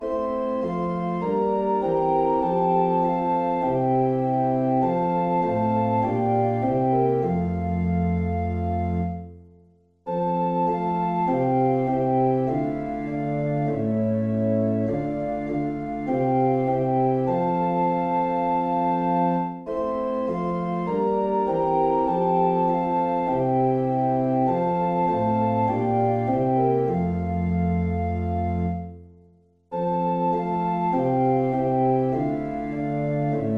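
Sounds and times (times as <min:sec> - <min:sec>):
organ playing a hymn: 0:00.0 - 0:09.4, 0:10.1 - 0:29.0, 0:29.7 - 0:33.5.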